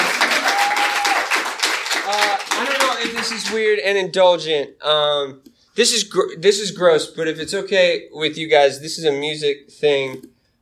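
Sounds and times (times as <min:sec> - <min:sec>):
audience applause: 0:00.0 - 0:03.6
speech: 0:03.2 - 0:10.3.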